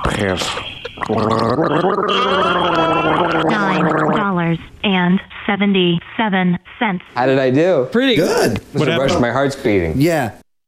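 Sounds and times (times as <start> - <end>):
speech: 0.2 - 10.4
person gargling liquid said to be urine: 1.0 - 4.4.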